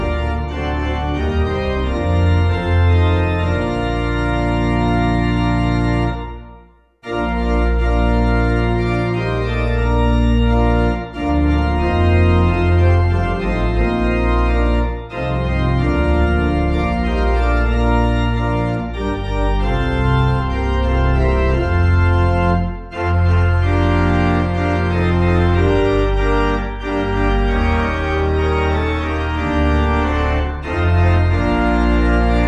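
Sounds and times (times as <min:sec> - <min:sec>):
pipe organ music: 0:00.0 - 0:32.4.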